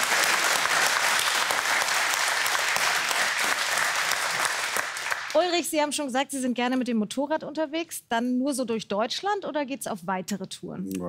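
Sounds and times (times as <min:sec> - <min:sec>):
audience applause: 0:00.0 - 0:05.4
speech: 0:05.4 - 0:11.0.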